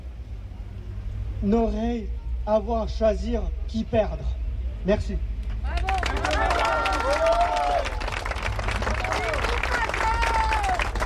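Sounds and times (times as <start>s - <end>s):
speech: 1.4s - 5.3s
audience applause: 5.7s - 11.0s.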